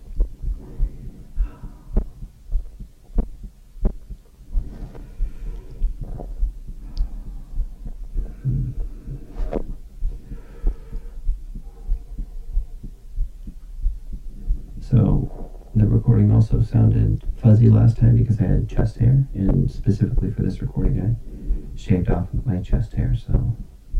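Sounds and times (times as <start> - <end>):
stomach digestive noise through stethoscope mic: 0.0 - 15.8, 19.4 - 22.2
speech: 15.8 - 23.7.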